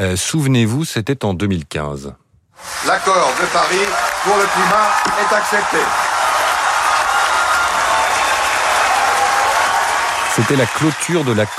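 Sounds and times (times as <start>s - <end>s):
speech: 0.0s - 6.0s, 10.4s - 11.5s
large crowd applause at climate conference closing: 2.6s - 11.5s.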